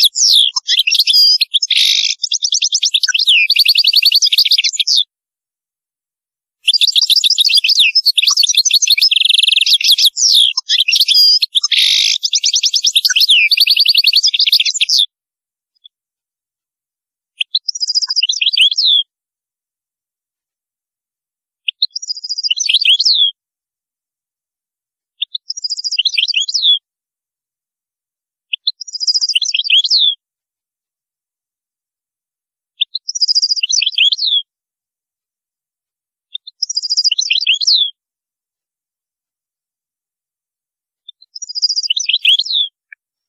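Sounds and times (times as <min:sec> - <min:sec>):
European goldfinch twittering song: 0:00.0 - 0:05.1, 0:06.7 - 0:15.1, 0:17.4 - 0:19.0, 0:21.7 - 0:23.3, 0:25.2 - 0:26.8, 0:28.6 - 0:30.2, 0:32.9 - 0:34.4, 0:36.4 - 0:37.9, 0:41.1 - 0:43.2.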